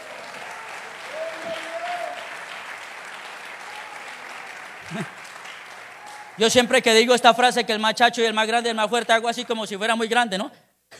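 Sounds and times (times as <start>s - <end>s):
audience applauding: 0.0s - 7.4s
speech: 4.9s - 5.2s, 6.4s - 10.6s.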